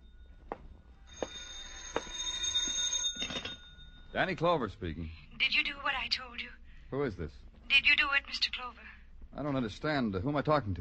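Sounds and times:
telephone ringing with an electronic trill: 1.0 - 4.1
speech: 4.2 - 10.7.

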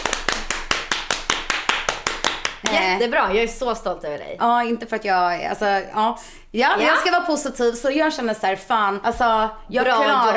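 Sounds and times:
person clapping alone in a mock round of applause: 0.0 - 3.0
speech: 2.6 - 10.3.

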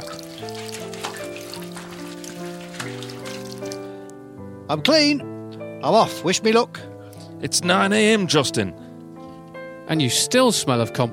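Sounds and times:
water poured from a teapot: 0.0 - 3.9
speech: 4.7 - 8.8, 9.9 - 11.1.

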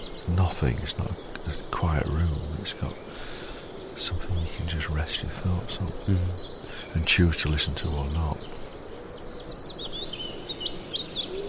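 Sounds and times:
chaffinch singing a descending chatter: 0.0 - 11.4
speech: 0.3 - 3.1, 4.0 - 8.6.

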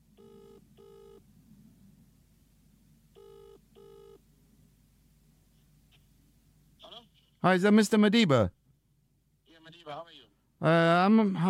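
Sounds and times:
low hum: 0.0 - 11.4
telephone ringing tone: 0.2 - 1.2, 3.2 - 4.2
speech: 7.4 - 8.6, 9.9 - 11.4.

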